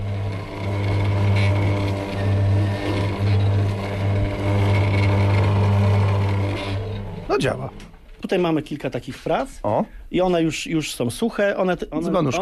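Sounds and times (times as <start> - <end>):
washing-machine motor driving a potter's wheel: 0.0 - 8.1
speech: 7.4 - 12.3.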